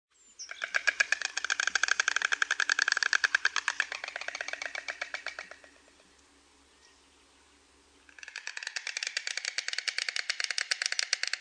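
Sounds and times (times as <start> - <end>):
White stork bill clattering: 0.4 - 6.0, 8.1 - 11.3.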